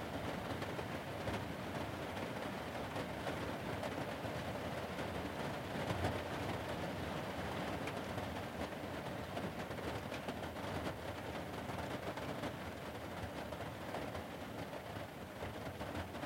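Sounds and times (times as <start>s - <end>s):
rain heard in an interior: 0.0s - 16.2s.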